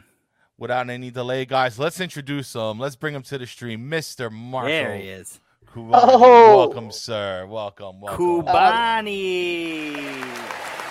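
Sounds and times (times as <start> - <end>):
speech: 0.6 - 10.4
faint applause greeting a live stream guest: 9.3 - 10.8.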